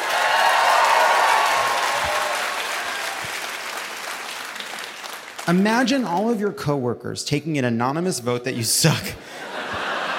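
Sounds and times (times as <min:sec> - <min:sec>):
audience applause: 0:00.0 - 0:05.6
speech: 0:05.5 - 0:09.4
laughter: 0:08.6 - 0:10.1.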